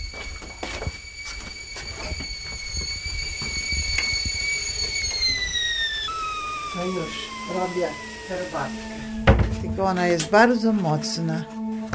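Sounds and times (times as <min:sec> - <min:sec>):
thin high-pitched kettle whistle: 0:00.0 - 0:10.2
water boiling in a kettle: 0:03.9 - 0:09.1
speech: 0:06.8 - 0:11.6.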